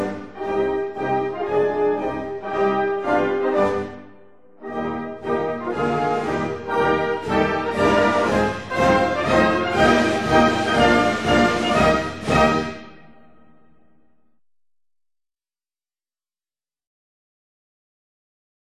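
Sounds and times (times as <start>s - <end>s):
national anthem: 0.0s - 13.7s.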